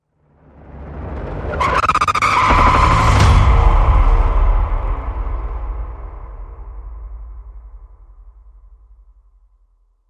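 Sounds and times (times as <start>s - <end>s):
stutter hit: 1.5s - 4.2s.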